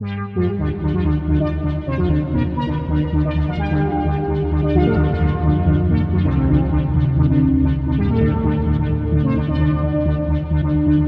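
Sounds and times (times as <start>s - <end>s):
music loop: 0.5s - 11.0s.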